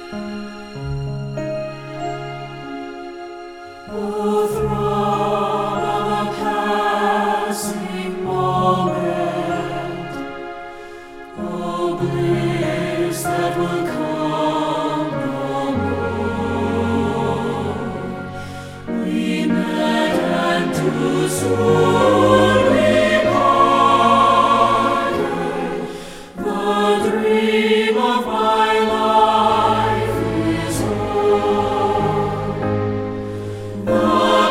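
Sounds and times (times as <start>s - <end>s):
choir singing: 0.0s - 34.4s.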